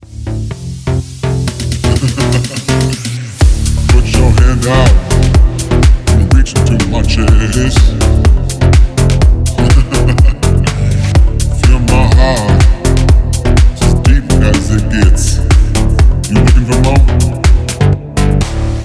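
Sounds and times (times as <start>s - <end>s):
bass: 0.0s - 18.8s
laughter: 1.8s - 3.2s, 9.5s - 11.1s.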